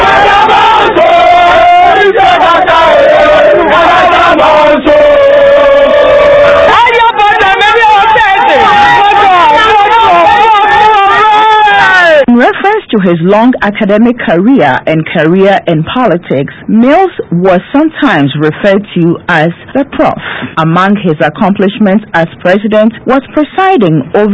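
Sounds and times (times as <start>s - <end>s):
supporters and bread sellers cheering to welcome President Mills: 0.0s - 12.3s
speech: 13.0s - 24.3s.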